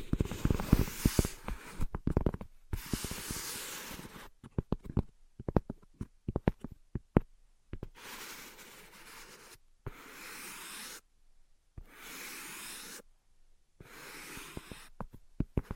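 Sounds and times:
tapping and scratching: 0.0 - 8.0, 14.3 - 15.7.

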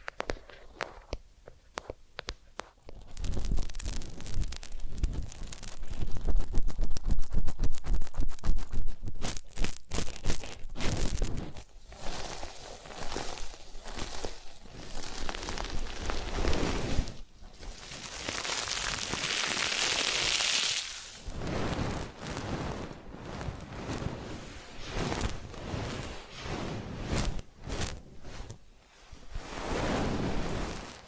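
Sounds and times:
massage and ear-cleaning scratching and rubbing strokes: 2.6 - 31.0
bright hissy swish: 21.0 - 31.0.

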